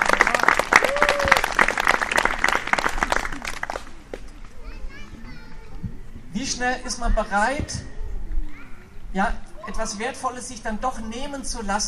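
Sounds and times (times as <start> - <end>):
crowd applause: 0.0 - 4.0
children's voices and chatter: 4.3 - 11.8
speech: 6.6 - 7.9, 9.2 - 11.8.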